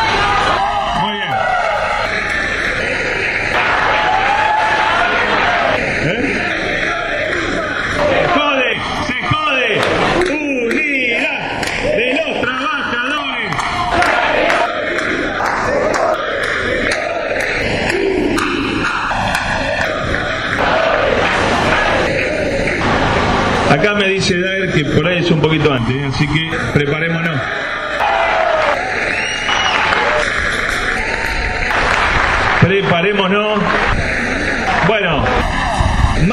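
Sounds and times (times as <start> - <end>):
crowd applauding: 0.0 - 36.3
speech: 25.8 - 27.0.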